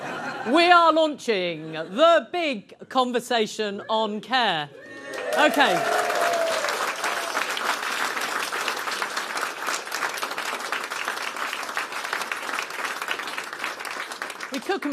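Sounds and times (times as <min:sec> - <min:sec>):
speech: 0:00.4 - 0:06.1
audience applause: 0:05.0 - 0:14.9.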